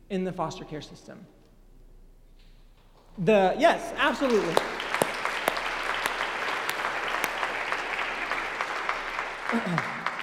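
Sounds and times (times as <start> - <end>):
speech: 0.1 - 1.4, 3.2 - 4.8, 9.5 - 10.0
crowd applauding: 4.0 - 10.2.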